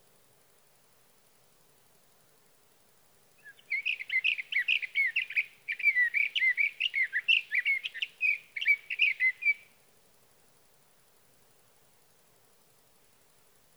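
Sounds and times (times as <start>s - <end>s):
Sage thrasher song: 3.4s - 9.7s.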